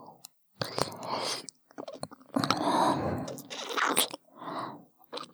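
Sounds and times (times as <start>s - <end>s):
ASMR ear licking sounds: 0.6s - 4.3s, 5.1s - 5.3s.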